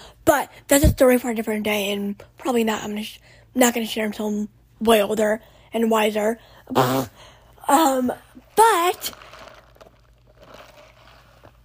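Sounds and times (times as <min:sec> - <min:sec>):
speech: 0:00.2 - 0:09.3
sipping coffee: 0:08.3 - 0:11.6.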